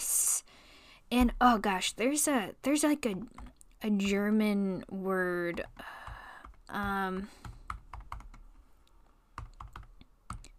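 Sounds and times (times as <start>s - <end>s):
speech: 1.1s - 5.9s, 6.7s - 7.5s
typing on a computer keyboard during an online search: 5.5s - 8.5s, 9.4s - 10.5s.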